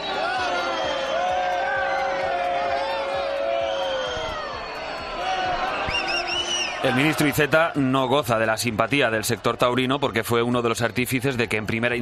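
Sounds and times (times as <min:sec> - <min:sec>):
bullring crowd booing: 0:00.0 - 0:10.1
speech: 0:06.8 - 0:12.0.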